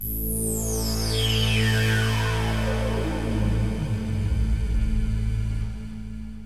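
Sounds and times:
filter sweep: 1.0 - 6.4.

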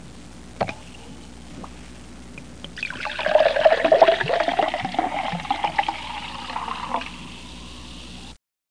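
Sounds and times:
liquid pouring: 2.8 - 7.4.

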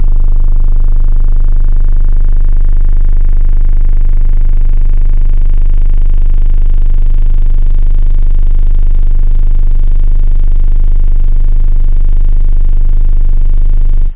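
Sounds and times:
sub bass: 0.0 - 14.1.

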